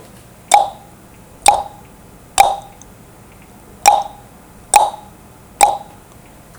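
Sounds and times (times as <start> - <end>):
computer: 0.5 - 0.8, 1.4 - 1.8, 2.4 - 2.8, 3.8 - 4.2, 4.7 - 5.9.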